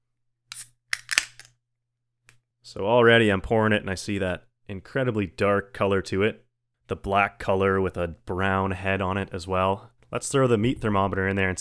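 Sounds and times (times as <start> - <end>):
beer can being cracked open: 0.5 - 1.5
speech: 2.7 - 11.5.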